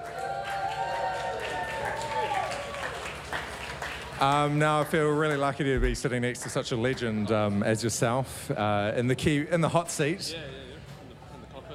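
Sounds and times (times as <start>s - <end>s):
audience applause: 0.0s - 6.5s
crowd noise: 0.0s - 11.7s
speech: 4.2s - 10.6s.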